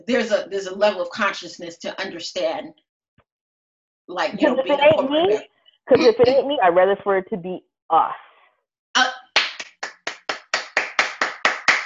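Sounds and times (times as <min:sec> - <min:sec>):
speech: 0:00.0 - 0:02.8, 0:04.1 - 0:08.3
hand clapping: 0:09.4 - 0:11.8.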